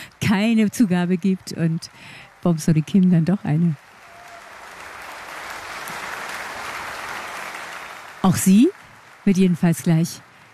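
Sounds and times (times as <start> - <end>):
speech: 0.3 - 3.9, 8.3 - 10.3
audience applauding a concert performance: 3.8 - 10.5.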